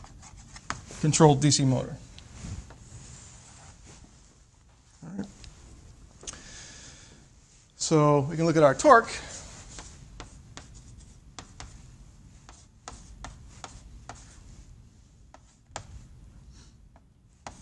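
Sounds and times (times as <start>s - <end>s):
speech: 1.0s - 2.1s, 7.9s - 9.3s
chalk or marker writing an equation on a board: 9.6s - 11.8s, 12.4s - 14.5s, 15.3s - 16.1s, 17.0s - 17.6s.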